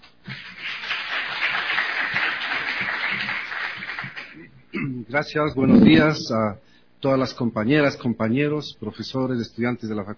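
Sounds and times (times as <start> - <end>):
audience applause: 0.3 - 4.4
speech: 5.1 - 10.1.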